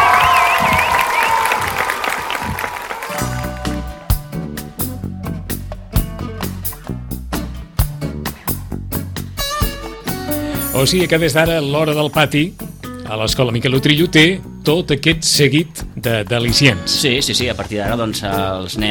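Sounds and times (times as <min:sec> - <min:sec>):
crowd applause and cheering: 0:00.0 - 0:04.9
upbeat music with a strong steady beat: 0:03.1 - 0:08.3, 0:09.0 - 0:18.8
speech: 0:10.8 - 0:18.8.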